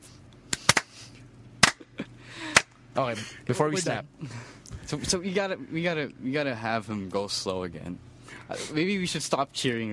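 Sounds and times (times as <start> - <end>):
slow hand claps: 0.5 - 0.9, 1.6 - 1.8, 2.5 - 2.8
speech: 3.0 - 9.9.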